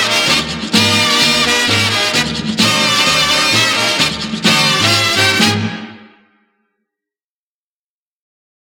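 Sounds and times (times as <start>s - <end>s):
merengue flamenco music: 0.0s - 6.3s.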